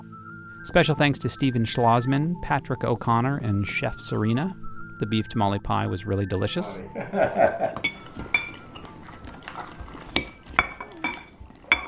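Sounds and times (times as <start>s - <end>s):
speech: 0.6s - 8.0s
laughter: 6.6s - 7.9s
forks and knives clinking against plates: 7.4s - 11.8s.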